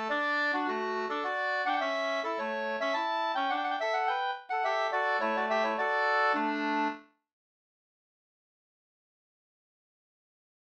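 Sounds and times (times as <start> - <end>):
two-part slangpolska: 0.0 - 7.0.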